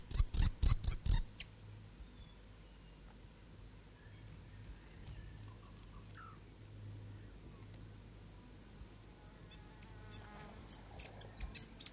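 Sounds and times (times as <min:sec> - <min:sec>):
South Island fantail song with high squeaky chattering chips: 0:00.0 - 0:01.3.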